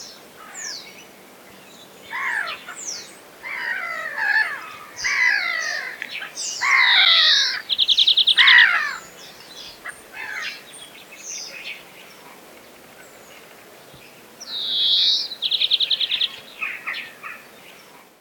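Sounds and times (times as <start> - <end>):
European greenfinch singing: 2.0 - 12.2, 13.0 - 17.4.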